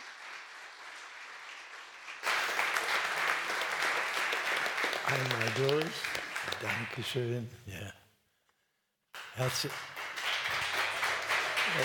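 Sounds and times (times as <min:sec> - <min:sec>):
prolonged applause: 0:00.0 - 0:07.3, 0:09.2 - 0:11.8
speech: 0:05.1 - 0:08.0, 0:09.4 - 0:10.0.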